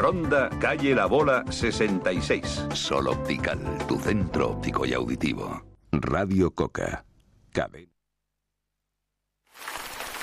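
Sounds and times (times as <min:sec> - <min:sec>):
speech: 0:00.0 - 0:07.9
rain: 0:09.5 - 0:10.2.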